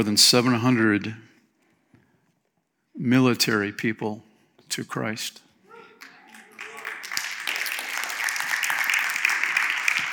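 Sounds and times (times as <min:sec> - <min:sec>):
speech: 0:00.0 - 0:01.3, 0:03.0 - 0:05.4
crowd applauding: 0:06.0 - 0:10.1.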